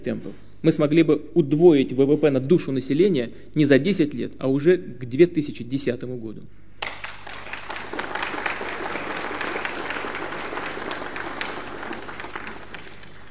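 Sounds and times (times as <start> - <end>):
speech: 0.0 - 6.6
applause: 6.8 - 13.2.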